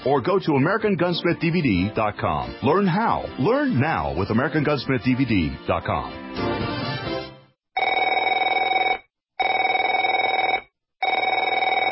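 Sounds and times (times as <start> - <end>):
speech: 0.0 - 6.6
telephone ringing: 7.8 - 11.9.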